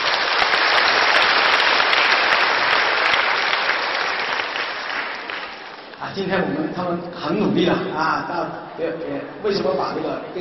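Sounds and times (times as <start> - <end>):
sustained audience applause: 0.0 - 6.0
speech: 6.1 - 10.3.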